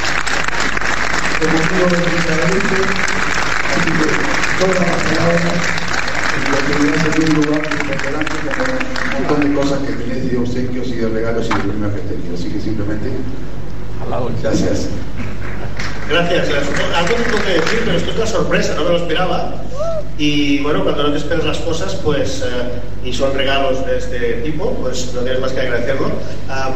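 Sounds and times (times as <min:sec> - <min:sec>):
audience applause: 0:00.0 - 0:10.1, 0:15.8 - 0:18.4
speech: 0:01.4 - 0:05.8, 0:06.4 - 0:15.1, 0:16.1 - 0:26.7.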